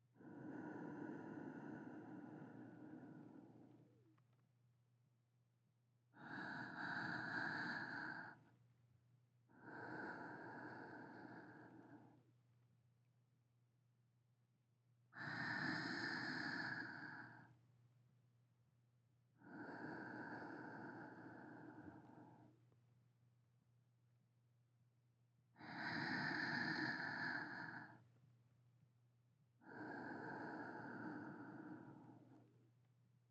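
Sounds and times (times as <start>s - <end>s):
sleeping breathing: 0.2s - 3.9s, 6.2s - 8.4s, 9.5s - 12.2s, 15.2s - 17.6s, 19.4s - 22.6s, 25.6s - 28.0s, 29.6s - 32.5s.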